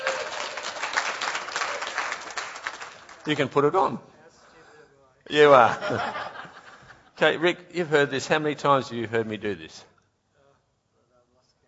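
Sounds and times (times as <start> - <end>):
audience clapping: 0.0 - 3.8
speech: 3.2 - 4.1, 5.3 - 6.2, 7.2 - 9.9
laughter: 5.4 - 7.2.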